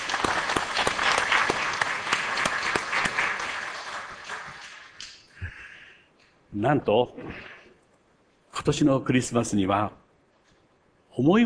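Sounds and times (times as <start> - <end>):
audience applause: 0.0 - 5.0
speech: 6.6 - 7.5, 8.7 - 10.0, 11.2 - 11.4.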